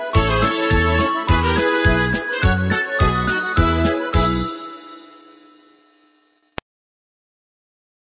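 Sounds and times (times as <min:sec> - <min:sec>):
New Year polka backing track: 0:00.0 - 0:04.9.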